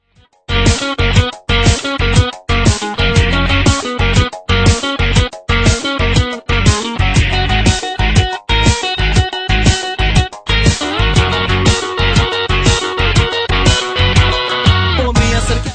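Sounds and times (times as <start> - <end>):
guitar: 0.0 - 15.7.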